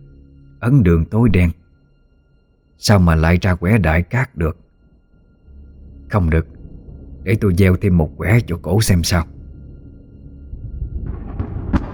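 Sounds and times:
speech: 0.6s - 1.6s, 2.8s - 4.6s, 6.1s - 6.5s, 7.2s - 9.4s
loud thunderclap: 10.5s - 11.9s.

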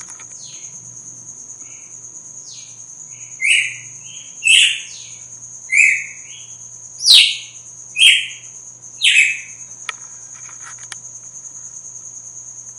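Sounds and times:
Red-cowled cardinal delivering forceful notes: 2.5s - 9.6s.

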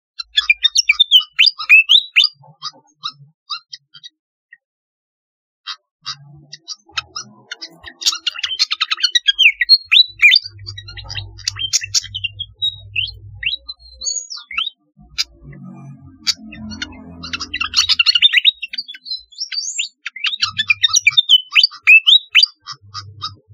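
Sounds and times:
flycatcher singing: 0.3s - 2.4s, 7.6s - 15.4s, 16.3s - 23.5s.

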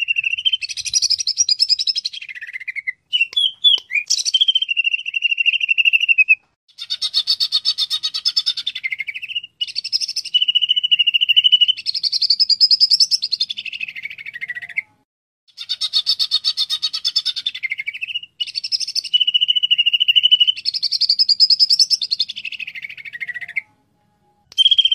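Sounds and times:
greater green leafbird chattering song: 0.0s - 14.9s, 15.5s - 23.7s, 24.5s - 24.9s.

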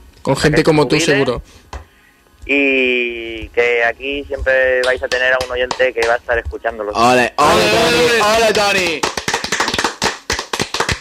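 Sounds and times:
speech: 0.2s - 1.6s, 2.4s - 9.2s
sparse hollow clapping from a few people: 4.8s - 6.4s, 8.4s - 11.0s.

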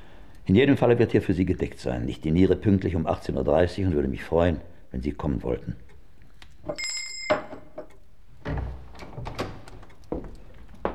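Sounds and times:
speech: 0.5s - 5.8s, 6.6s - 6.9s
small bell ringing to summon a servant: 6.7s - 7.5s
dull clunks and knocks: 7.4s - 10.9s.

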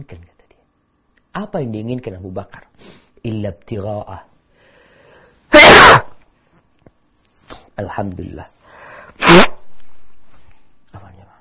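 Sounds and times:
speech: 0.0s - 0.4s, 1.3s - 4.3s, 7.8s - 8.6s
loud sneeze: 5.5s - 6.2s, 9.2s - 9.8s.

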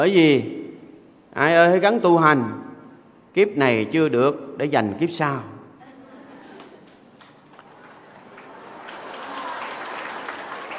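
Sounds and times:
speech: 0.0s - 0.6s, 1.4s - 2.6s, 3.4s - 5.5s
audience applause at a Buddhist dharma talk at Hoằng Pháp pagoda: 7.5s - 10.7s.

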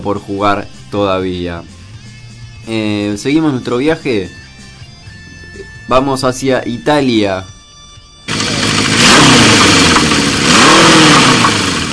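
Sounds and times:
speech: 0.0s - 1.8s, 2.6s - 4.4s, 5.9s - 7.5s
chainsaw revving: 8.3s - 11.9s.

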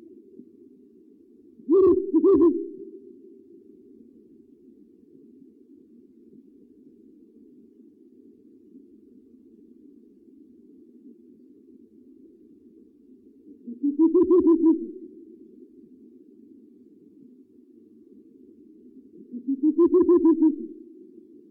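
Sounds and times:
owl hooting: 1.6s - 3.4s, 13.5s - 15.3s, 19.1s - 21.2s.

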